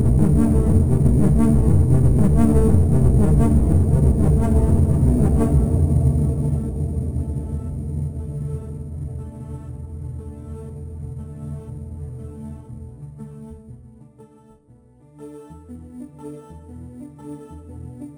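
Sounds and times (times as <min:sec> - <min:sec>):
ambient environment: 0:00.0 - 0:13.6.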